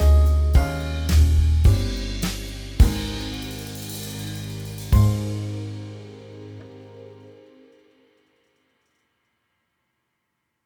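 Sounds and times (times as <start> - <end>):
jazz trio playing: 0.0 - 7.5.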